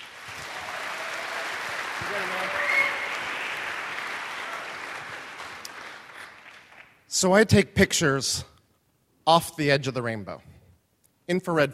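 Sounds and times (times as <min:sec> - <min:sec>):
audience applause: 0:00.0 - 0:07.0
speech: 0:02.0 - 0:02.7, 0:07.2 - 0:08.5, 0:09.3 - 0:10.6, 0:11.3 - 0:11.7.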